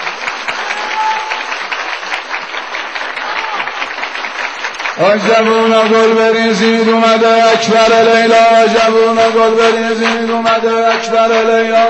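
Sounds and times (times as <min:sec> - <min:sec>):
audience applause: 0:00.0 - 0:06.8, 0:09.6 - 0:11.8
speech: 0:05.0 - 0:11.8.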